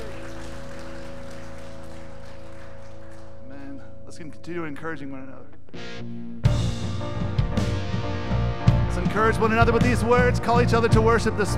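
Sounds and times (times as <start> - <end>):
audience hand clapping: 0.0 - 3.8
speech: 4.2 - 11.5.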